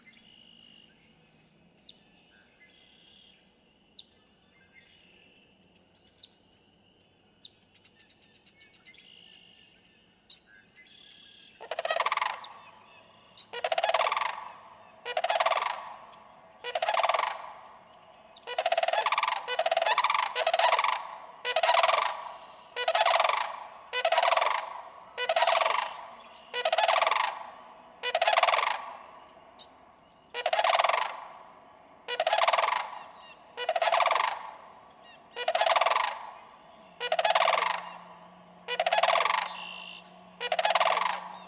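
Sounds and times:
low steady hum: 0.0 - 41.4
Sandhill crane bugling: 11.6 - 41.4.

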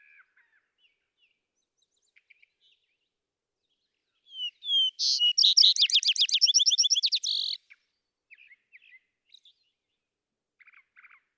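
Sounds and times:
vesper sparrow singing: 4.3 - 7.6.

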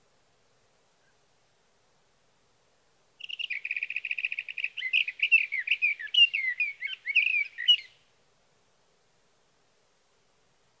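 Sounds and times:
sage thrasher singing: 3.2 - 7.9.

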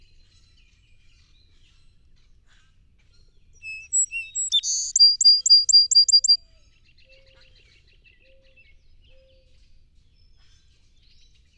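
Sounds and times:
song sparrow singing: 3.6 - 6.4.

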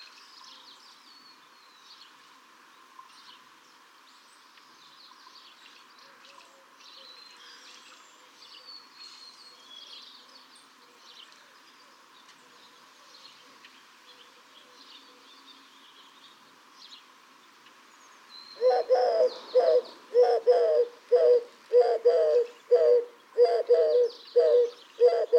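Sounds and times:
Eurasian Collared-dove: 18.6 - 25.3.

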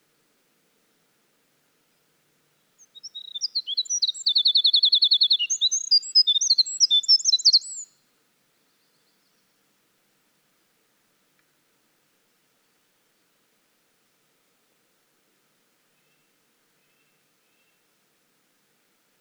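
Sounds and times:
Winter wren in full song: 2.8 - 7.9.

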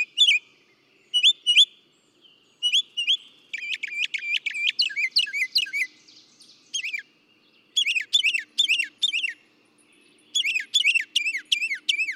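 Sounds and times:
Northern Mockingbird: 0.0 - 0.4, 1.1 - 1.8, 2.6 - 5.9, 6.7 - 7.1, 7.7 - 9.4, 10.2 - 12.1.

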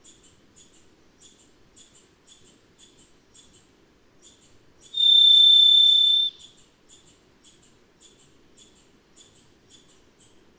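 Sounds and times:
varied thrush buzzy whistle: 5.0 - 6.4.

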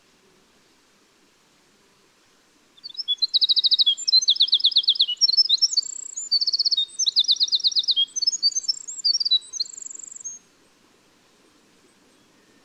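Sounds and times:
winter wren singing: 2.8 - 10.4.

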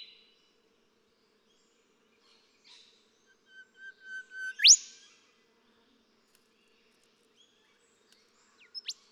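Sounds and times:
golden whistler song: 3.4 - 4.8.

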